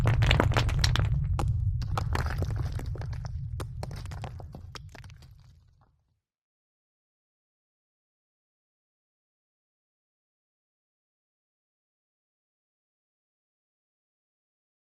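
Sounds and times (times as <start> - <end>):
landslide rocks tumbling: 0.0 - 5.8
earthquake rumble: 0.0 - 5.9.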